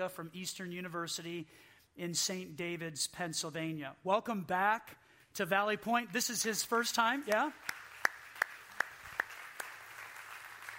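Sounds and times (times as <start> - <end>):
speech: 0.0 - 7.8
sparse round of audience applause: 7.3 - 10.7.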